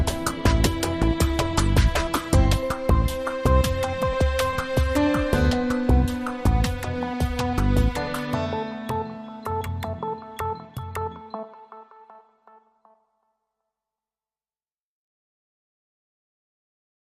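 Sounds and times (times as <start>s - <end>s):
groove music: 0.0s - 13.0s.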